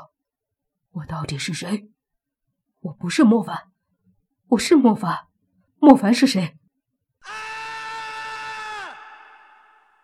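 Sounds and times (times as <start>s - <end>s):
speech: 1.0s - 1.9s, 2.8s - 3.7s, 4.5s - 6.6s
man screaming in pain in a zombie fantasy audio drama: 7.2s - 10.0s.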